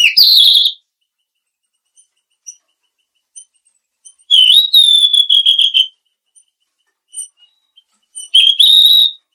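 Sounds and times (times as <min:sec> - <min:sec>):
mangrove blue flycatcher whistling: 0:00.0 - 0:00.8, 0:04.1 - 0:05.9, 0:07.1 - 0:09.3.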